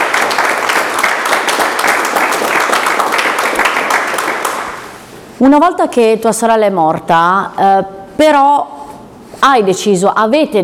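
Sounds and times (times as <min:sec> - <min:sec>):
applause: 0:00.0 - 0:05.0
speech: 0:05.4 - 0:08.7, 0:09.4 - 0:10.6.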